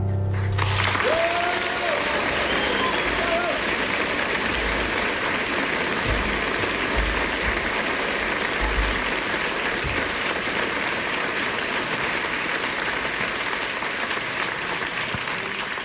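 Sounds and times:
crowd applause: 0.2s - 15.8s.

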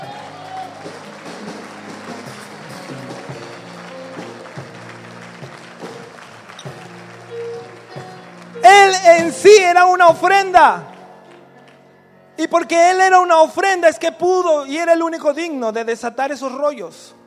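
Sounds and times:
audience applause: 0.0s - 12.1s
speech: 9.2s - 10.9s, 12.4s - 17.2s.

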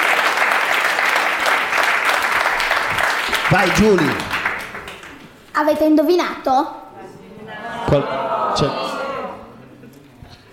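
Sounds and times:
applause: 0.0s - 5.3s
speech: 3.5s - 4.3s, 5.6s - 6.8s, 7.9s - 8.8s
laughter: 7.0s - 10.5s.

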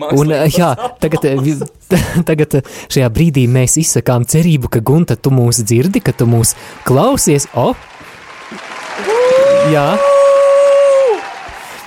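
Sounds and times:
speech: 0.0s - 8.6s, 9.6s - 10.1s
laughter: 0.4s - 2.3s
artificial applause sound effect: 5.6s - 11.8s.

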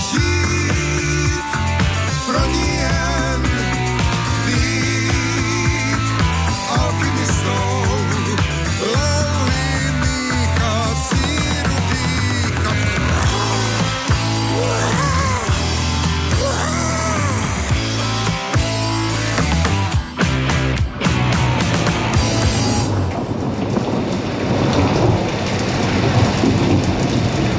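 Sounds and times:
music: 0.0s - 23.5s
heavy rain: 0.0s - 27.5s
rumbling thunder: 22.5s - 27.5s.

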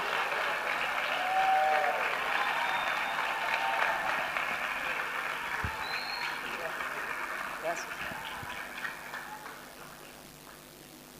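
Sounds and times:
audience applause welcoming a speaker: 0.0s - 10.7s
faint whistle: 2.5s - 3.3s, 5.7s - 6.4s.

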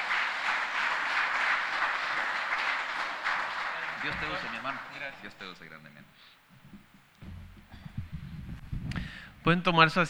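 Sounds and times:
crowd applauding in welcome: 0.0s - 5.4s
speech: 4.0s - 6.7s, 9.4s - 10.0s.

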